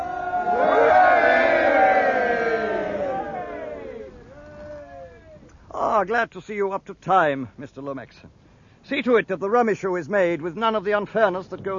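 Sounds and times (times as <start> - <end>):
ship's crew of men cheering: 0.0 - 5.5
speech: 6.0 - 11.7.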